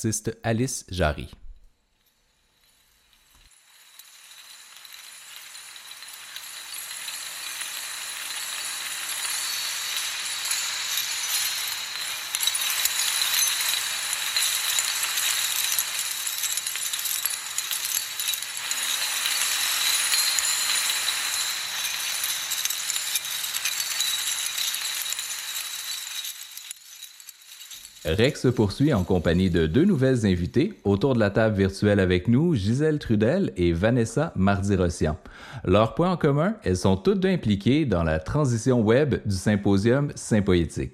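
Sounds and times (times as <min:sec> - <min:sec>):
speech: 0:00.0 - 0:01.4, 0:28.2 - 0:40.9
audio of kinetic art installation Lighthouse 01: 0:01.0 - 0:31.9.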